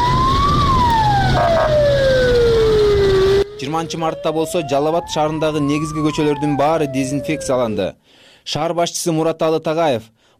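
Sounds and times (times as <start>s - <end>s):
fire engine siren wailing while disinfecting streets in Suzak district: 0.0s - 7.9s
speech: 3.8s - 10.3s.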